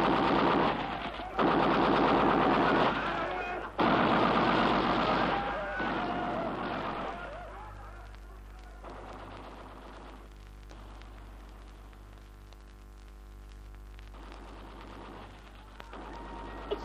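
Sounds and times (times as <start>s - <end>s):
Browning machine gun firing: 0.0s - 7.5s, 8.8s - 11.2s, 14.1s - 16.8s.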